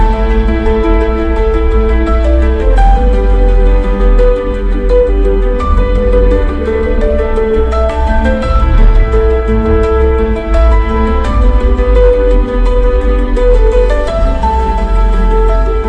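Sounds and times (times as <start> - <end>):
ambient background: 0.0 - 15.8.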